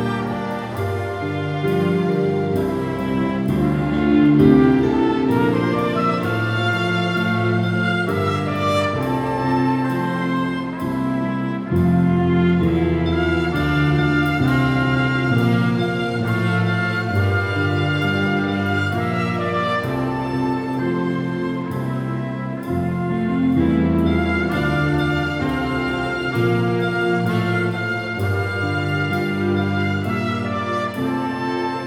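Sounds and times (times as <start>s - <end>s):
piano: 0.0s - 31.8s
strings: 0.0s - 31.8s.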